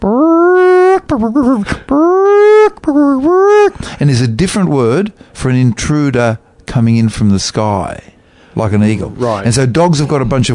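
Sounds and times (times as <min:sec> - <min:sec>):
person imitating chicken alarm call for a ground intruder: 0:00.0 - 0:03.8
speech: 0:01.1 - 0:10.5.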